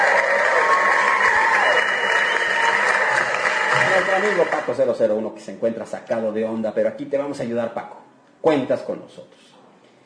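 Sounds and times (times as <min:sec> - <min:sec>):
applause: 0:00.0 - 0:04.9
speech: 0:04.2 - 0:09.5.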